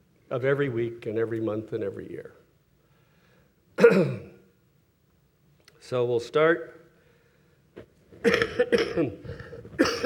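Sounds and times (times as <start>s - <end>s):
speech: 0.3s - 2.4s, 3.9s - 4.3s, 5.9s - 6.8s, 7.8s - 9.4s
coughing from an asthma flare-up: 3.8s - 4.4s, 8.2s - 10.0s
throat clearing from an asthma flare-up: 3.8s - 4.4s, 8.2s - 10.0s.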